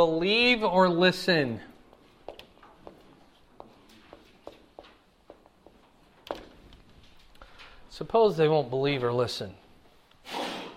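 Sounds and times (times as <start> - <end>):
speech: 0.0 - 1.7, 8.0 - 9.6
sneeze: 10.2 - 10.7.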